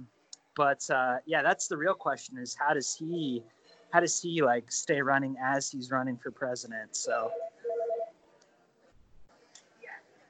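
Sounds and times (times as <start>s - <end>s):
faint scattered small sounds: 0.0s - 10.2s
speech: 0.6s - 7.4s
phone text-message notification soft electronic beeps: 7.1s - 8.2s.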